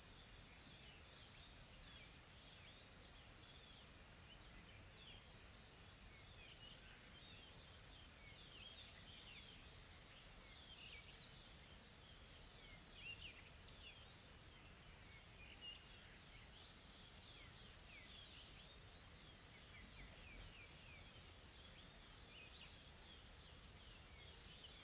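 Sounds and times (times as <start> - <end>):
insect chorus hissing: 0.0 - 24.8.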